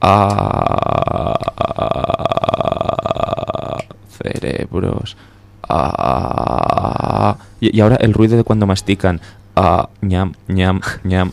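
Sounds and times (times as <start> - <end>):
speech: 0.0 - 0.8, 4.4 - 6.6, 7.2 - 11.3
voice imitating a zombie groan: 0.0 - 4.0, 5.6 - 7.4.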